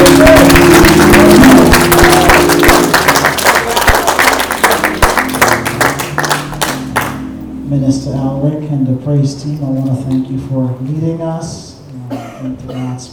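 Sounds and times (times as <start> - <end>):
audience applause: 0.0 - 7.2
sustained musical tones: 0.0 - 10.5
speech: 8.9 - 11.7, 12.4 - 13.1.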